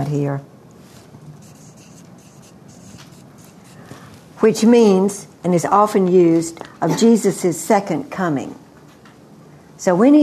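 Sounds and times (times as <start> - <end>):
speech: 0.0 - 0.5, 4.4 - 8.6, 9.8 - 10.2
writing on a board: 1.4 - 3.9.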